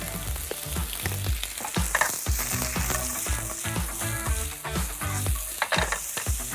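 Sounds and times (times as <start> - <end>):
onions frying on full heat in a pan: 0.0 - 6.5.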